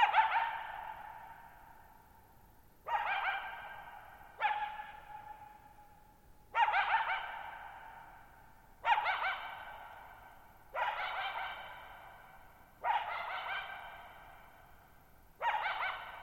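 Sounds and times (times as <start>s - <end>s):
coyote barking and yipping: 0.0s - 1.8s, 2.8s - 5.7s, 6.5s - 14.7s, 15.4s - 16.2s.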